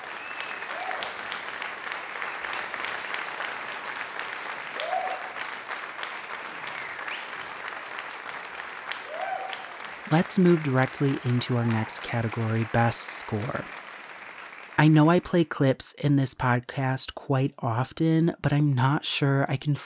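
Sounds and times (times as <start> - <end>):
round of applause: 0.0 - 15.3
speech: 10.1 - 13.8, 14.8 - 19.8.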